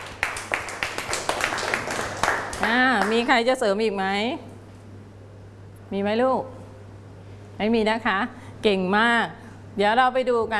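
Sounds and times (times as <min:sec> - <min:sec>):
classroom group clapping: 0:00.0 - 0:03.4
speech: 0:02.6 - 0:04.5, 0:05.9 - 0:06.6, 0:07.6 - 0:10.5.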